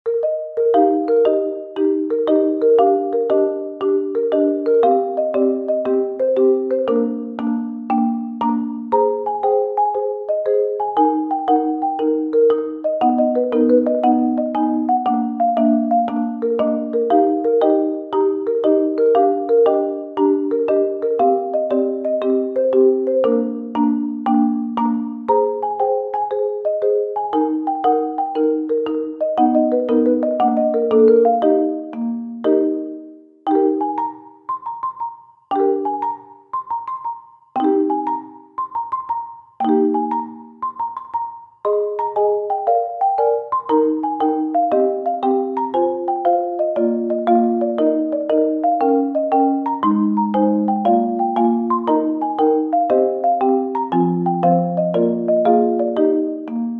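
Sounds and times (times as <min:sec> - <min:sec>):
marimba: 0:00.1 - 0:56.7.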